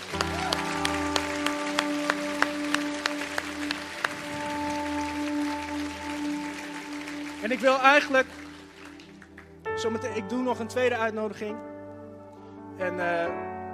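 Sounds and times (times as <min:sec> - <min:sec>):
audience applause: 0:00.0 - 0:09.7
speech: 0:07.4 - 0:08.4, 0:09.8 - 0:11.7, 0:12.8 - 0:13.5.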